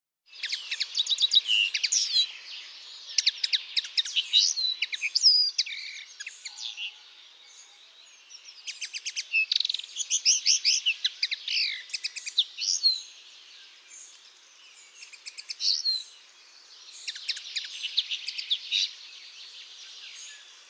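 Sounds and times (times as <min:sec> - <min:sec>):
common linnet twittering: 0:00.3 - 0:07.0, 0:08.2 - 0:13.2, 0:16.8 - 0:19.0.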